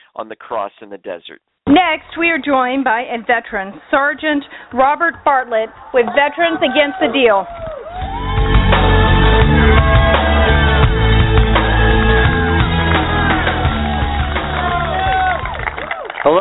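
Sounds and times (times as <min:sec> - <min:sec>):
speech: 0:00.2 - 0:08.1
rally crowd cheering: 0:04.0 - 0:16.4.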